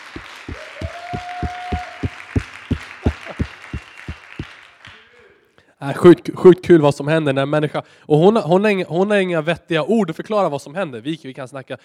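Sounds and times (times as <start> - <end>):
crowd applauding: 0.0 - 5.4
speech: 5.8 - 11.8.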